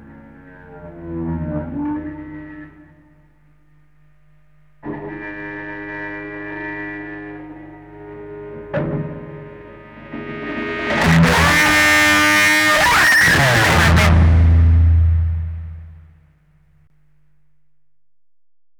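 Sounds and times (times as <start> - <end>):
guitar solo: 9.7 - 15.8.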